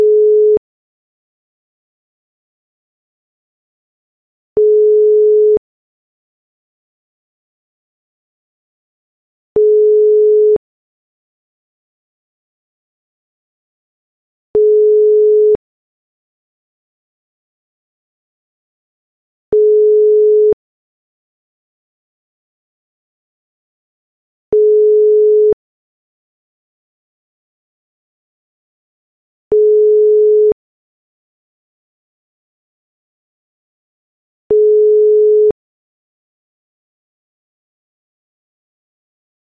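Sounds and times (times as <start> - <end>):
European ETSI telephone ringback tone: 0.0 - 0.6, 4.6 - 5.6, 9.6 - 10.6, 14.6 - 15.6, 19.6 - 20.6, 24.6 - 25.6, 29.5 - 30.6, 34.5 - 35.6.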